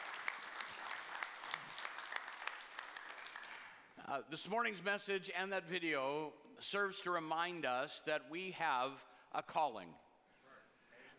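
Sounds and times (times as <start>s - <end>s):
audience clapping hands: 0.0s - 3.9s
speech: 4.1s - 10.0s.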